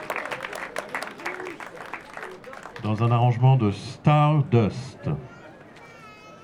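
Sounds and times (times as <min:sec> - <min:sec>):
audience applauding the lead trumpeter of a jazz orchestra: 0:00.0 - 0:03.2
speech: 0:02.8 - 0:05.3.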